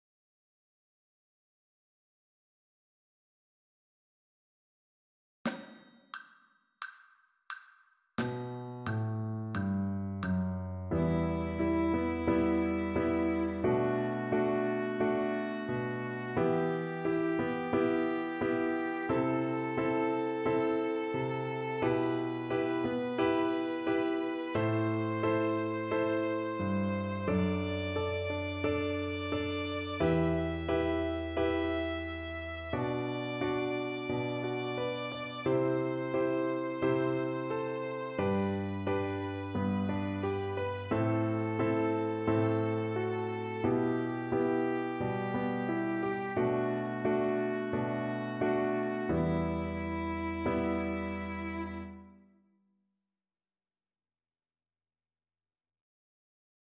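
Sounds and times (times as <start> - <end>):
E natural minor scale played: 8.6 - 52.0.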